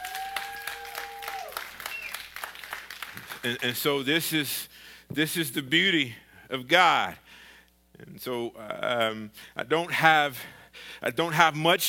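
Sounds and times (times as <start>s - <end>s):
church congregation clapping to welcome a new member: 0.0s - 3.9s
speech: 3.4s - 7.2s, 8.0s - 11.8s.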